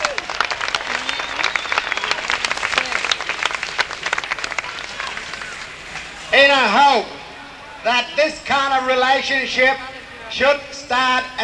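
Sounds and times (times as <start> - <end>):
audience clapping: 0.0 - 6.2
speech: 7.8 - 11.4.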